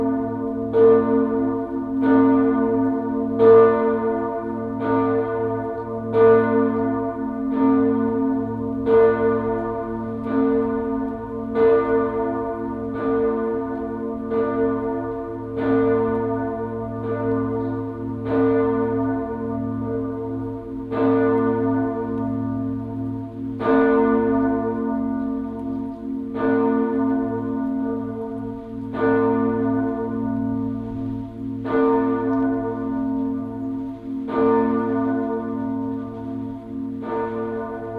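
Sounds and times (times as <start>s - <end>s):
Dreifaltigkeit church bell ringing: 0.0s - 37.9s.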